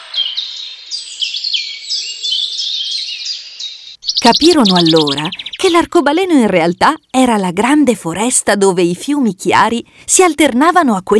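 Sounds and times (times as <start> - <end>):
birds singing: 0.0 - 7.5
speech: 4.2 - 11.1.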